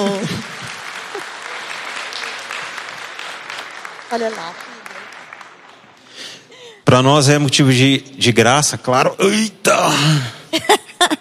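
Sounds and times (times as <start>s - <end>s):
audience applause: 0.0s - 6.6s
speech: 4.1s - 4.7s, 6.9s - 11.1s.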